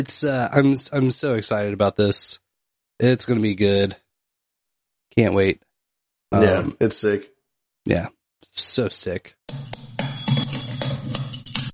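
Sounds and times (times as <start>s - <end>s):
speech: 0.0s - 2.4s, 3.0s - 4.0s, 5.1s - 5.7s, 6.3s - 9.8s
broken bell ringing: 9.5s - 11.7s.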